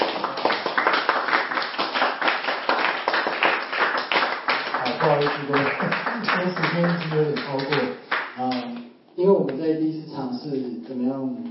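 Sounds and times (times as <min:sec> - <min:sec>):
audience clapping: 0:00.0 - 0:08.8
speech: 0:05.2 - 0:11.4.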